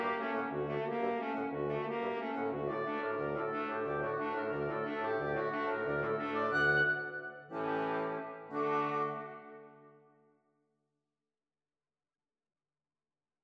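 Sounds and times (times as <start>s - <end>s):
molto allegro classical piece in D major: 0.0s - 9.8s.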